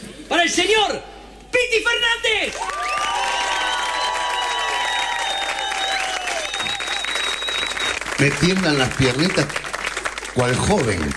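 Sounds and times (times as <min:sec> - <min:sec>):
speech: 0:00.4 - 0:02.8, 0:08.2 - 0:09.6, 0:10.4 - 0:11.1
cheering voices: 0:02.5 - 0:09.5
loud sustained applause from a large crowd: 0:02.5 - 0:11.1
whistles: 0:02.7 - 0:08.2.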